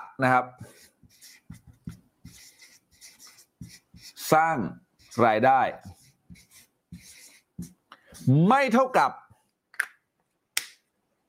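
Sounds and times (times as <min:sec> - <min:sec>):
speech: 0:00.2 - 0:00.9, 0:04.3 - 0:06.0, 0:08.2 - 0:09.2
marker or chalk writing on a board during a lesson: 0:00.3 - 0:08.8.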